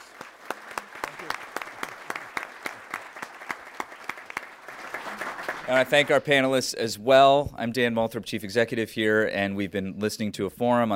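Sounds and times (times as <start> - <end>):
audience applause: 0.0 - 6.3
speech: 5.7 - 10.9.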